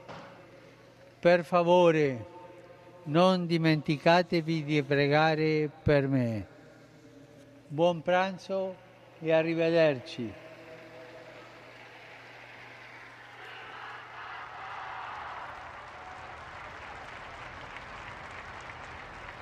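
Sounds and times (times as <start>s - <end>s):
speech: 1.2s - 2.3s, 3.1s - 6.5s, 7.7s - 10.4s
crowd applause in St. Peter's Square: 9.0s - 19.4s.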